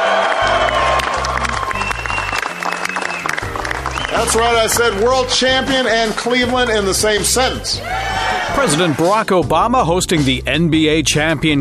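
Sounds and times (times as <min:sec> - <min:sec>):
crowd at the White House applauding and cheering the Cleveland Cavaliers: 0:00.0 - 0:09.2
speech: 0:04.2 - 0:11.6.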